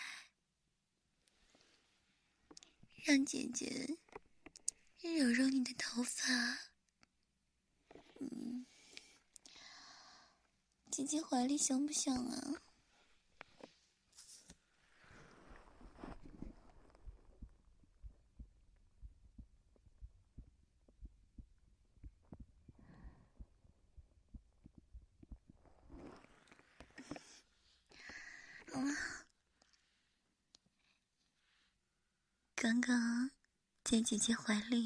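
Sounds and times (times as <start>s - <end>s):
speech: 3.0s - 4.1s, 5.0s - 6.7s, 11.0s - 12.7s, 32.8s - 33.1s, 33.9s - 34.8s
heartbeat: 15.9s - 25.9s.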